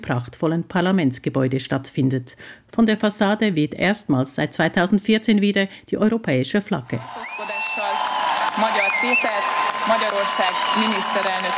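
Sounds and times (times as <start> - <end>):
speech: 0.0 - 7.6, 8.6 - 11.5
crowd cheering outside parliament: 7.0 - 11.5
people whistling: 7.2 - 11.5.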